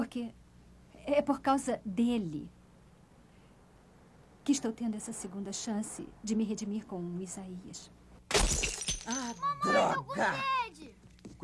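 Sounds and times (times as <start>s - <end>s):
speech: 0.1s - 0.4s, 1.0s - 2.6s, 4.5s - 11.4s
glass shattering: 8.3s - 9.5s.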